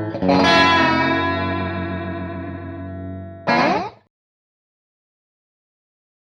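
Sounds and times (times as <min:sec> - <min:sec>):
delay effect: 0:00.2 - 0:04.0.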